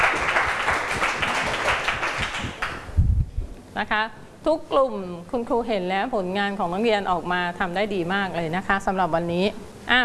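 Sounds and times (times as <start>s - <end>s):
classroom applause: 0.0s - 2.9s
speech: 3.8s - 10.0s.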